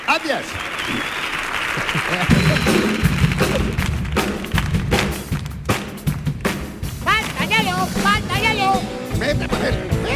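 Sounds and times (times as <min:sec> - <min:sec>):
crowd applause: 0:00.0 - 0:08.0
speech: 0:00.2 - 0:01.3, 0:01.9 - 0:03.7
laughter: 0:01.6 - 0:03.8, 0:09.1 - 0:10.0.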